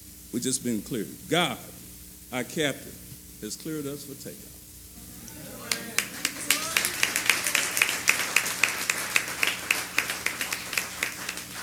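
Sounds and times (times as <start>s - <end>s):
speech: 0.3s - 4.6s
low murmur of voices: 5.0s - 11.2s
audience clapping in steady rhythm: 5.2s - 11.6s.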